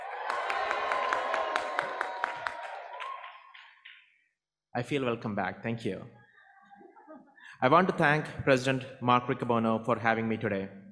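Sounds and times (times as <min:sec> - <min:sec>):
audience cheering at a National Federation of the Blind convention: 0:00.0 - 0:03.8
sharp individual claps: 0:00.1 - 0:04.2
speech: 0:04.8 - 0:06.2, 0:07.6 - 0:10.8.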